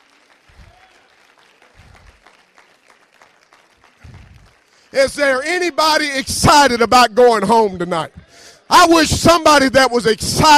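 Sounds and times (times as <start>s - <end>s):
audience hand clapping: 0.0s - 5.7s
speech: 4.9s - 10.5s.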